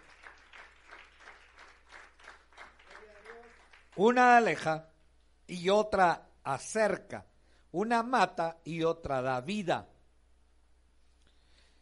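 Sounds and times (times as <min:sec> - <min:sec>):
audience applause: 0:00.0 - 0:04.2
speech: 0:04.0 - 0:04.9, 0:05.5 - 0:09.9.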